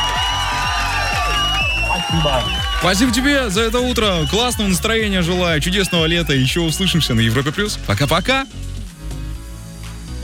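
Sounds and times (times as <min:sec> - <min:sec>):
applause: 0:00.0 - 0:06.2
crowd cheering and high whoops: 0:00.0 - 0:07.4
speech: 0:02.1 - 0:08.7.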